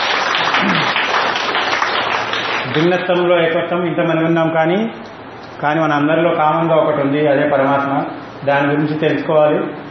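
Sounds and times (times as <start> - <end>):
audience clapping at a spiritual gathering: 0.0 - 3.0
speech: 2.8 - 9.8.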